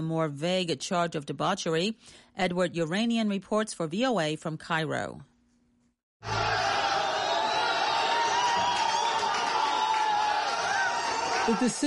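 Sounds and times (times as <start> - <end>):
speech: 0.0 - 5.3, 11.5 - 11.8
courtroom onlookers cheering: 6.2 - 11.8
applause inside the courtroom: 6.3 - 11.8.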